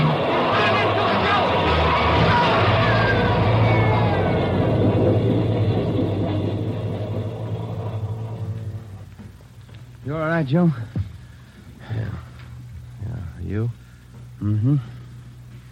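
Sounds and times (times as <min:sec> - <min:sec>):
train roaring past through a tunnel: 0:00.0 - 0:10.1
speech: 0:10.4 - 0:11.0.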